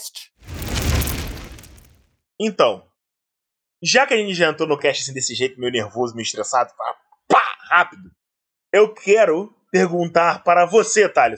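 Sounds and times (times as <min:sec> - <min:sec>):
fireball explosion sound effect: 0:00.4 - 0:02.0
speech: 0:02.4 - 0:02.9, 0:03.8 - 0:07.0, 0:07.7 - 0:11.3.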